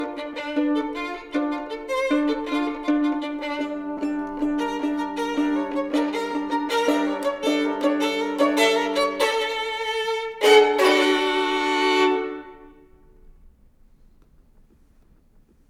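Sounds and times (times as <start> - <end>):
two violins playing a dance: 0.0 - 13.0.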